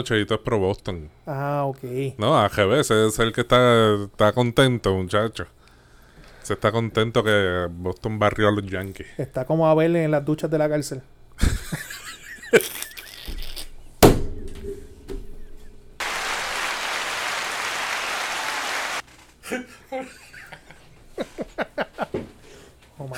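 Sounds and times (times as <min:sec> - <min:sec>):
speech: 0:00.0 - 0:05.6, 0:06.4 - 0:11.8, 0:12.5 - 0:12.9
laughter: 0:11.4 - 0:13.2, 0:19.4 - 0:22.2
applause: 0:16.0 - 0:19.0.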